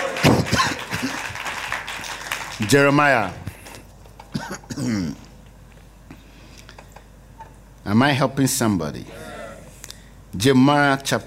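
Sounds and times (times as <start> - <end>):
audience clapping hands: 0.0 - 3.4
speech: 2.6 - 3.4, 4.8 - 5.2, 7.9 - 9.3, 10.3 - 11.2
audience shouting: 9.1 - 9.7.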